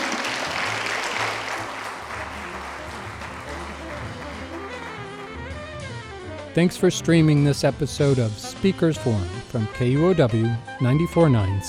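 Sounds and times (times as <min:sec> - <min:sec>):
sustained audience applause: 0:00.0 - 0:06.3
speech: 0:06.6 - 0:11.6.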